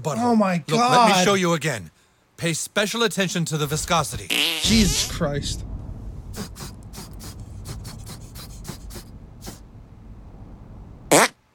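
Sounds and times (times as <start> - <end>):
speech: 0.0 - 5.7
sputtering farts: 11.1 - 11.4.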